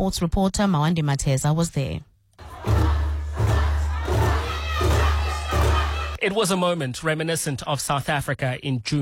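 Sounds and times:
speech: 0.0s - 2.1s, 6.2s - 8.9s
football supporters singing and cheering at Bafana Bafana farewell event in Rosebank: 2.4s - 6.2s
heavy drum beats: 2.4s - 6.2s.

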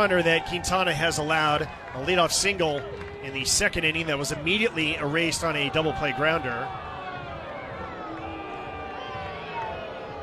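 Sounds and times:
speech: 0.0s - 6.8s
large baseball crowd booing: 0.0s - 10.2s.

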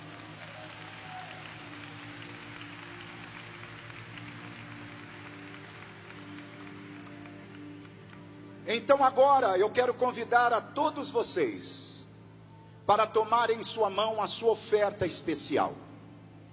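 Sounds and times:
audience applauding: 0.0s - 8.4s
speech: 8.7s - 11.9s, 12.9s - 15.8s.

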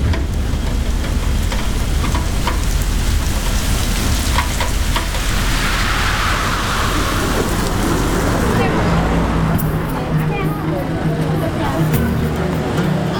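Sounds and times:
heavy rain: 0.0s - 13.1s.

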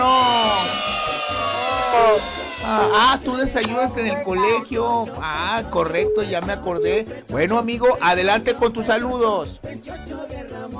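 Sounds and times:
children applauding and cheering: 0.0s - 3.4s
speech: 2.2s - 10.7s.

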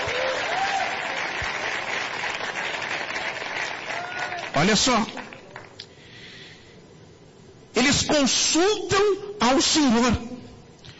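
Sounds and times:
audience applauding: 0.0s - 5.8s
speech: 4.6s - 5.2s, 7.9s - 10.3s.

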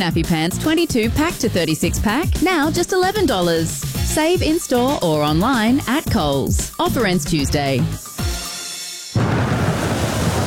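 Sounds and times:
speech: 0.0s - 8.1s
rain: 9.2s - 10.4s
thunder: 9.2s - 10.4s.

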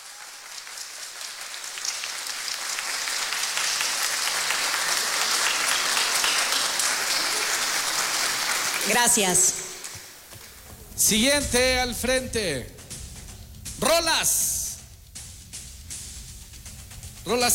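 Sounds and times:
audience applause: 0.0s - 10.2s
speech: 8.9s - 9.6s, 11.1s - 12.8s, 13.9s - 14.5s, 17.3s - 17.5s.

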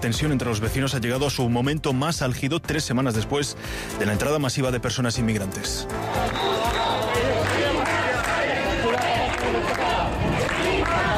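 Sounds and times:
speech: 0.0s - 6.5s
crowd shouting chants to expel immigrants: 5.9s - 11.1s.

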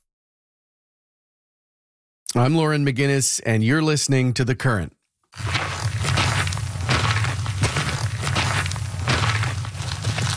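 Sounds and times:
speech: 2.3s - 5.6s
boots walking on a trail: 5.4s - 10.3s.

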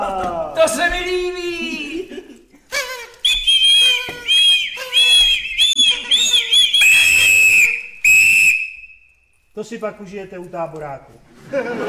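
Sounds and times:
speech: 0.0s - 1.8s, 9.7s - 11.8s
laughter: 1.6s - 2.7s, 11.3s - 11.8s
party blower toy being blown: 2.7s - 9.0s.

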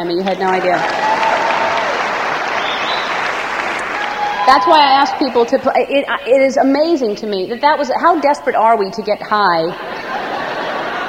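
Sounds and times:
speech: 0.0s - 1.1s, 4.5s - 10.0s
crowd applauding: 0.3s - 5.5s
laughter: 9.7s - 11.0s.

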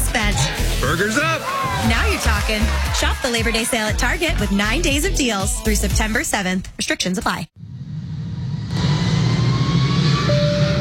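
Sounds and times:
speech: 0.9s - 7.6s
airplane engine roar in an airline advert: 7.6s - 10.7s.

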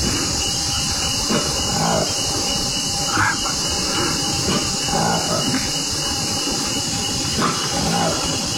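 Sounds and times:
hissing background: 0.3s - 8.5s
call of a newly discovered monkey species: 1.1s - 6.2s, 7.2s - 8.5s.

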